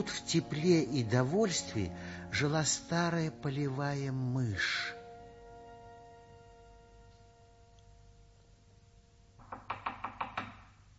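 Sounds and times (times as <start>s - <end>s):
speech: 0.0s - 5.0s
knocking on the door of a field mouse's burrow in a fairy tale: 9.4s - 10.8s.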